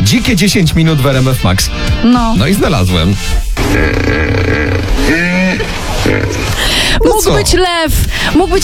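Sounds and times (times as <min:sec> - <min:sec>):
speech: 0:00.1 - 0:08.6
hippopotamus calling: 0:03.6 - 0:07.6.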